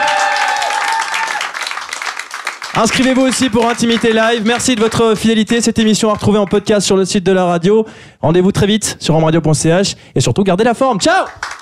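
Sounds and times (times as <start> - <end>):
audience applause: 0.0 - 5.2, 11.4 - 11.6
speech: 2.8 - 11.5.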